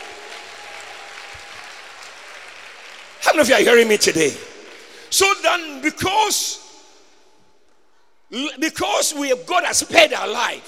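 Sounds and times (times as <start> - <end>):
audience applause: 0.0 - 5.0
speech: 3.3 - 4.5, 5.1 - 6.6, 8.3 - 10.6.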